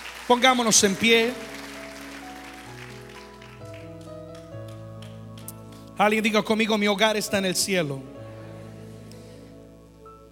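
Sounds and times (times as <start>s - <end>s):
audience clapping: 0.0s - 6.3s
speech: 0.3s - 1.6s, 6.0s - 8.2s
sustained keyboard chords: 0.6s - 10.2s.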